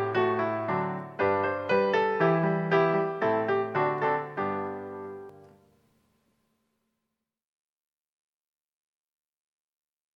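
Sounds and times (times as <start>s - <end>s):
instrumental music: 0.0s - 6.1s.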